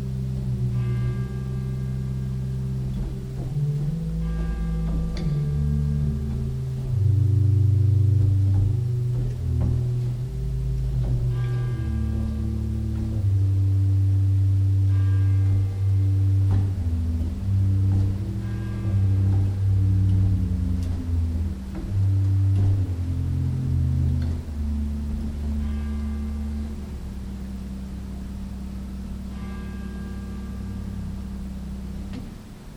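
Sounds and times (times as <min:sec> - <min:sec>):
organ pedal Principal 8 stop: 0:00.0 - 0:32.7.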